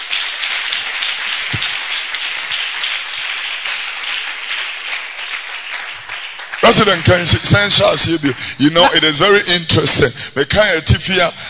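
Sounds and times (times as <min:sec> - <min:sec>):
audience clapping hands: 0:00.0 - 0:09.1
speech: 0:06.7 - 0:11.4.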